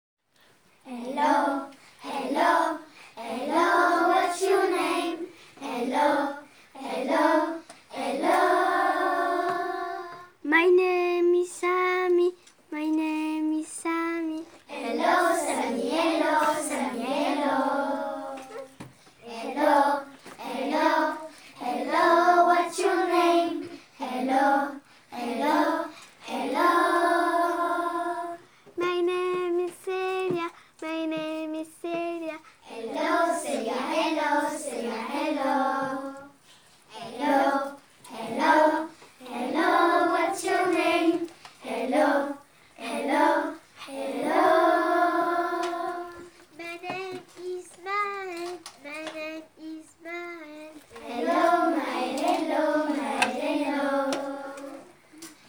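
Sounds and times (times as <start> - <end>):
vocals: 0.8 - 55.4.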